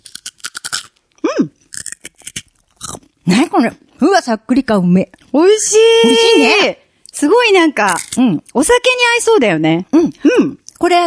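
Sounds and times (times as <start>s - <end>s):
crunchy tomato rusk being bitten and chewed: 0.0s - 3.9s
speech: 3.3s - 11.0s.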